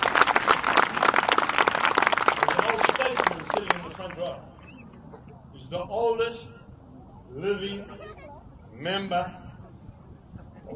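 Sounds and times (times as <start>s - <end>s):
audience clapping: 0.0s - 4.4s
speech: 5.7s - 6.6s, 7.3s - 8.0s, 8.8s - 9.4s.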